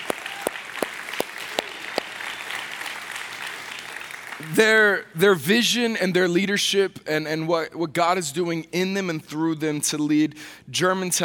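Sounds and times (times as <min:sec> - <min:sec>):
audience applause: 0:00.0 - 0:04.5
speech: 0:04.4 - 0:11.2.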